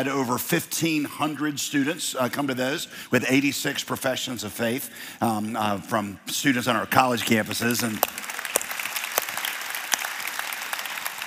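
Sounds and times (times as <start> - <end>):
speech: 0.0 - 8.2
crowd clapping: 6.9 - 11.2.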